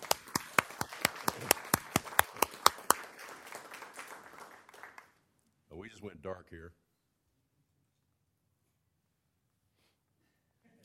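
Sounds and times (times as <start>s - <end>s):
round of applause: 0.0s - 5.2s
speech: 6.0s - 6.8s.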